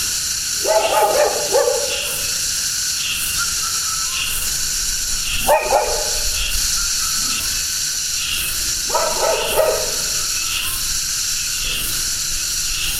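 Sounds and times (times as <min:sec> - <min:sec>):
cicadas: 0:00.0 - 0:12.9
dog: 0:00.6 - 0:02.4, 0:05.4 - 0:06.4, 0:08.8 - 0:10.3.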